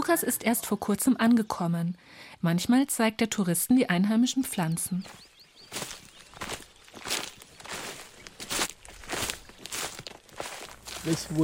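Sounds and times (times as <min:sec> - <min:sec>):
speech: 0:00.0 - 0:05.8, 0:11.0 - 0:11.4
footsteps crunching along a forest trail in Coco Hill Forest Barbados: 0:04.9 - 0:11.4.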